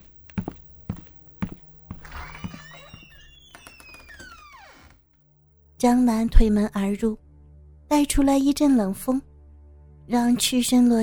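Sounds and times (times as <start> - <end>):
soft scuffing: 0.0 - 3.1
heavy footsteps approaching: 0.0 - 3.2
high squeaky gliding tones: 2.0 - 4.9
speech: 5.8 - 7.2, 7.9 - 9.3, 10.1 - 11.0.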